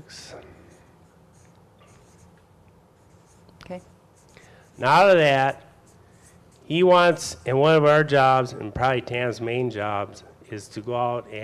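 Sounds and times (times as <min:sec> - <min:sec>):
drawing on paper or a board: 0:00.1 - 0:08.5
speech: 0:03.7 - 0:04.0, 0:04.8 - 0:05.6, 0:06.7 - 0:11.4.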